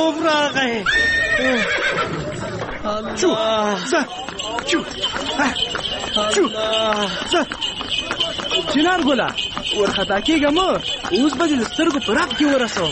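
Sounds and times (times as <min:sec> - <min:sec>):
speech: 0:00.0 - 0:12.9
horse pulling a buggy neighing: 0:00.8 - 0:02.3.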